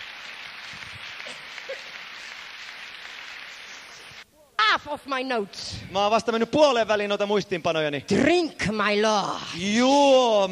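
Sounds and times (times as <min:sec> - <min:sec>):
audience clapping: 0:00.0 - 0:04.2
speech: 0:04.8 - 0:10.5.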